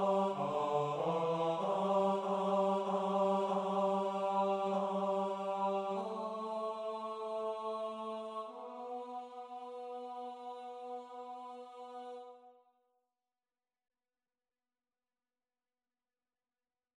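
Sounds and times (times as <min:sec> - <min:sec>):
male TTBB choir singing with baritone: 0:00.0 - 0:12.4.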